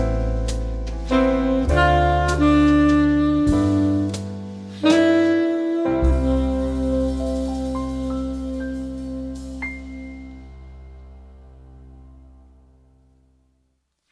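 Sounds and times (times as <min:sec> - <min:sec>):
saxophone played by a woman: 0:00.0 - 0:10.6.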